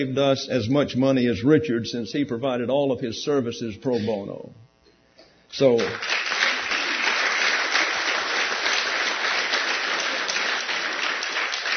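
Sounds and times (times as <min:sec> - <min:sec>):
speech: 0:00.0 - 0:04.6, 0:05.5 - 0:06.2
audience clapping in a church for the building's architect: 0:05.8 - 0:11.7.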